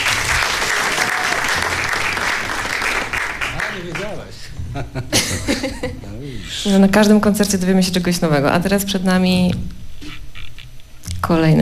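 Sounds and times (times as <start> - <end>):
audience applause: 0.0 - 4.4
laughter: 4.0 - 6.8
speech: 6.6 - 9.8, 11.2 - 11.6.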